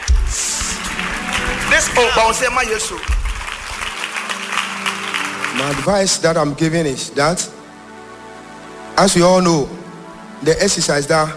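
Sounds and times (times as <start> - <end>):
audience clapping: 0.0 - 6.5
speech: 1.8 - 3.2, 5.6 - 7.5, 9.0 - 9.8, 10.4 - 11.3.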